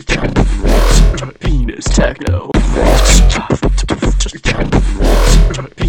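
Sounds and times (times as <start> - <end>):
techno music: 0.1 - 1.4, 2.3 - 3.5, 4.5 - 5.7.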